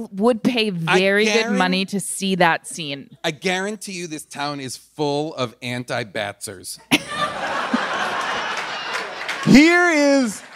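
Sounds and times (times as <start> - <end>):
speech: 0.0 - 7.8, 9.4 - 10.5
crowd murmur: 0.9 - 1.7
laughter: 0.9 - 1.7, 6.8 - 10.5
audience applauding: 7.2 - 10.5.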